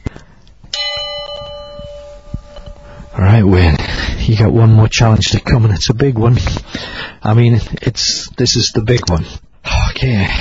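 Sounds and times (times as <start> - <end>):
bell with clapper removed, gently rung: 0.7 - 3.2
speech: 3.2 - 9.4, 10.0 - 10.3.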